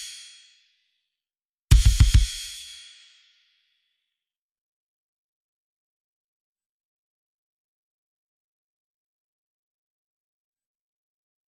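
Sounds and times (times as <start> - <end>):
drums: 0.0 - 0.4, 1.7 - 3.1.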